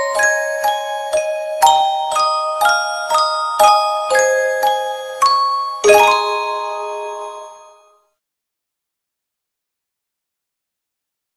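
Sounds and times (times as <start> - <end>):
music box melody: 0.0 - 8.1.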